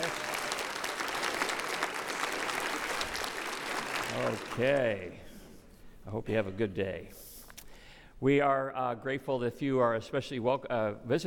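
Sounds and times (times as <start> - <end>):
crowd applause: 0.0 - 5.1
speech: 4.1 - 5.3, 6.1 - 7.2, 8.2 - 11.2.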